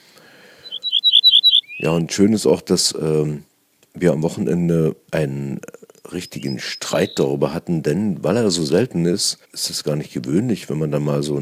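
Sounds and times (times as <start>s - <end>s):
ortolan bunting singing: 0.6s - 2.1s, 6.0s - 7.6s
speech: 1.8s - 11.4s.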